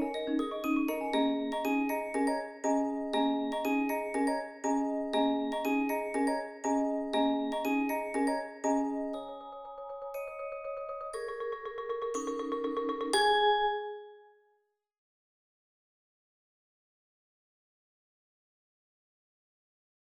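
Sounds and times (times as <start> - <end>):
bells in a percussion ensemble: 0.0 - 14.1
marimba in a percussion ensemble: 0.0 - 14.2
vibraphone in a percussion ensemble: 0.0 - 14.2
xylophone in a percussion ensemble: 0.0 - 14.2.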